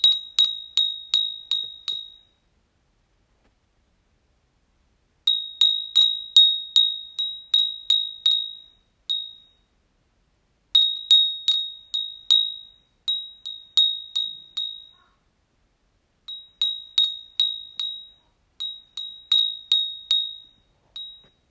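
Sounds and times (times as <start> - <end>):
wind chime: 0.0 - 2.4, 5.3 - 9.7, 10.8 - 15.0, 16.3 - 21.4.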